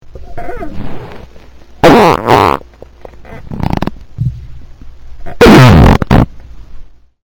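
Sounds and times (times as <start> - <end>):
fart: 0.4 - 4.0, 5.2 - 6.3.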